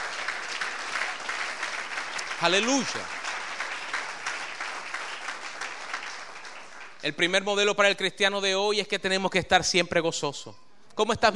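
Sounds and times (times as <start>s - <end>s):
audience applauding: 0.0s - 7.0s
speech: 2.4s - 3.2s, 7.0s - 11.3s.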